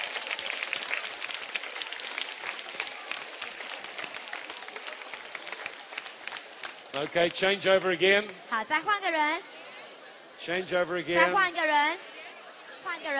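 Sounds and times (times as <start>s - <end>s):
group clapping hands: 0.0s - 8.4s
speech: 7.0s - 9.5s, 10.4s - 12.1s, 12.8s - 13.1s.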